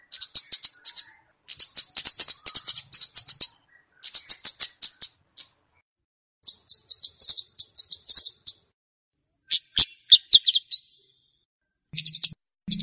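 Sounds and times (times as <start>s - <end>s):
flowerpecker chirps used as a lure for wild birds: 0.0s - 5.6s, 6.4s - 8.7s, 9.5s - 11.2s, 12.0s - 12.8s.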